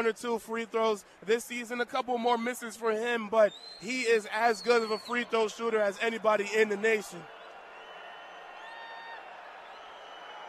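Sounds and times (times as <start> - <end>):
speech: 0.0 - 7.4
basketball arena crowd cheering: 0.0 - 10.4
thin whistle-like tones: 3.5 - 5.1.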